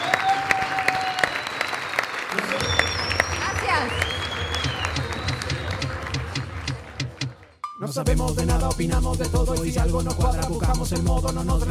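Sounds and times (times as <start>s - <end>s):
audience applause: 0.0s - 7.6s
speech: 8.0s - 11.6s.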